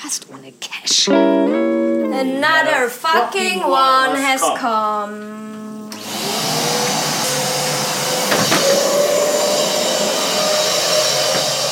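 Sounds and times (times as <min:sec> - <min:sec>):
speech: 0:00.0 - 0:05.6
vacuum cleaner sucking up crumbs of an organic rice cake: 0:05.5 - 0:11.7.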